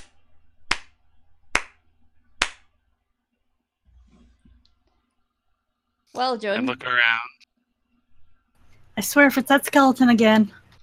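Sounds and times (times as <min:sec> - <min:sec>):
clapping: 0:01.6 - 0:01.8
speech: 0:06.2 - 0:07.4, 0:09.0 - 0:10.8.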